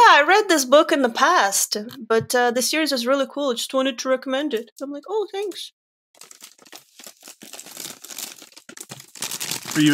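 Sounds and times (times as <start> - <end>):
speech: 0.3 - 6.4, 9.8 - 9.9
bag of chips opening: 6.2 - 9.9.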